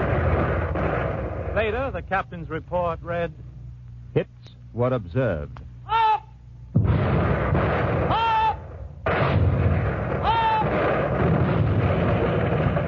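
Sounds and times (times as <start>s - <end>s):
warship guns firing shells in a naval bombardment: 0.0s - 2.1s, 6.8s - 8.4s, 9.0s - 12.8s
speech: 1.6s - 3.5s, 4.1s - 5.6s.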